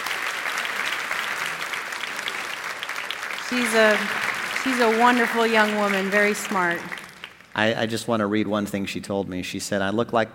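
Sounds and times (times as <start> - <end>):
audience round of applause: 0.0 - 7.7
speech: 3.5 - 7.0, 7.6 - 10.3.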